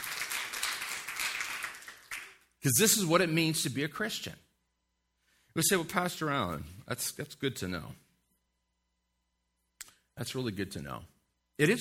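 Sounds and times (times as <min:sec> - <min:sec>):
audience clapping: 0:00.0 - 0:02.6
speech: 0:02.6 - 0:04.4, 0:05.6 - 0:08.0, 0:10.2 - 0:11.7.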